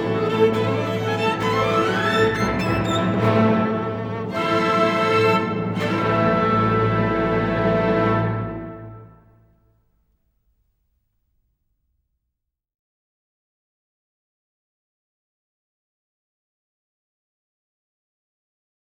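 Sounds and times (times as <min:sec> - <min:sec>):
violin concerto fast movement: 0:00.0 - 0:09.0.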